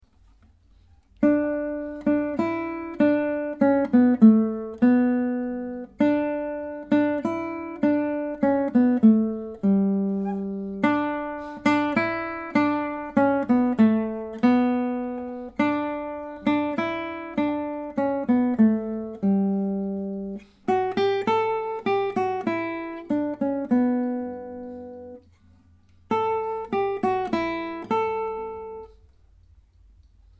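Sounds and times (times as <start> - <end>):
guitar: 0.0 - 30.3.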